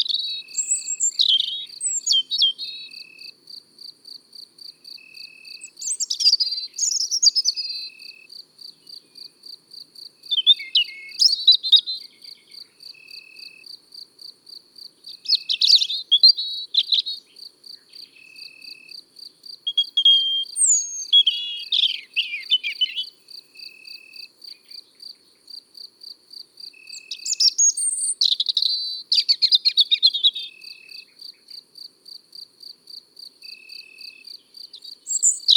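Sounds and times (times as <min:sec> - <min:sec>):
European robin singing in the countryside: 0:00.0 - 0:03.3, 0:05.2 - 0:09.4, 0:10.2 - 0:13.6, 0:15.1 - 0:18.8, 0:19.7 - 0:25.0, 0:26.8 - 0:31.5, 0:33.5 - 0:35.5.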